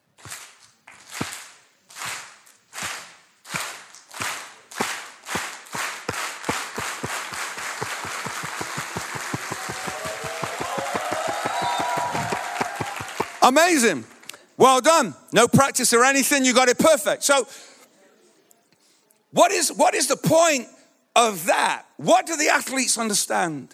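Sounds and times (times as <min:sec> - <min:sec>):
crowd rhythmic clapping for long jumper: 0:00.2 - 0:14.4
crowd noise: 0:02.8 - 0:14.6
speech: 0:13.5 - 0:17.7, 0:19.3 - 0:23.7.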